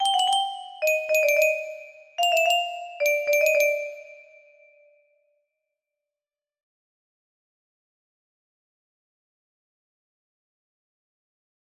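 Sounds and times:
music box: 0.0s - 4.9s.

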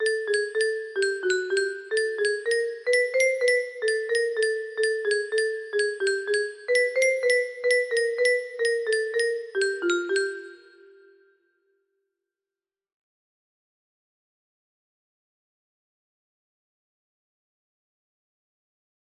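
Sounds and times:
music box: 0.0s - 11.3s.

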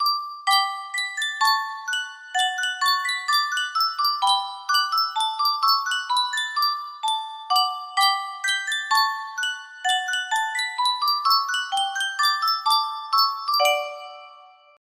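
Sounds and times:
Sankyo music box melody: 0.0s - 14.8s.

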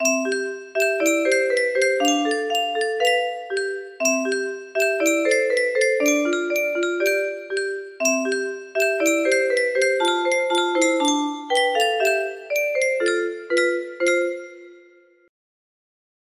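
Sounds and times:
music box melody: 0.0s - 15.2s.

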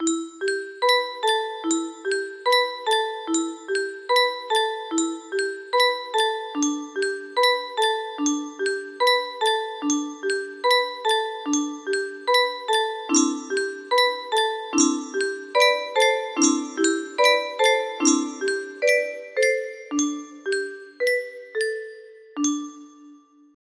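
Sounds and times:
melody: 0.0s - 23.4s.

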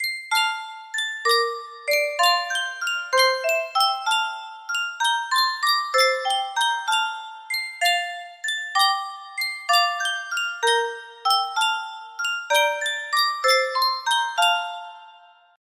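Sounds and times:
Sankyo music box: 0.0s - 15.6s.

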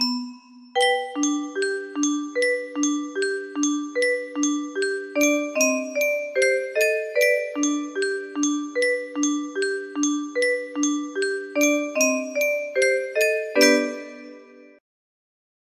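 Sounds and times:
glockenspiel: 0.0s - 14.8s.

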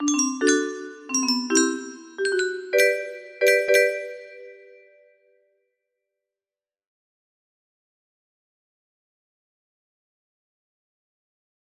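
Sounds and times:
music box melody: 0.0s - 4.9s.

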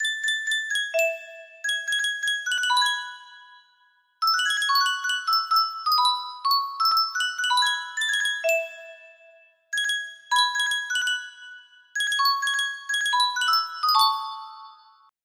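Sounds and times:
Sankyo custom tune music box melody: 0.0s - 15.1s.

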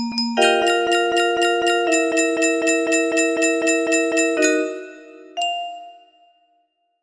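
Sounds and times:
piano: 0.1s - 5.4s.

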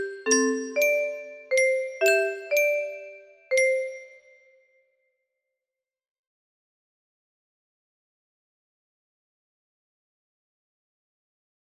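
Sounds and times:
music box melody: 0.0s - 4.5s.

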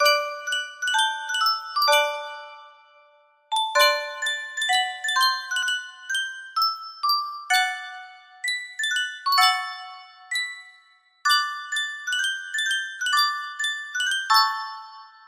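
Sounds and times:
Reuge music box: 0.0s - 15.2s.

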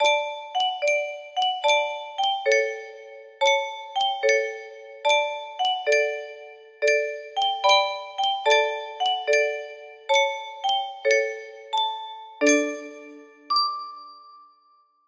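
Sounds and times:
music box: 0.0s - 15.0s.

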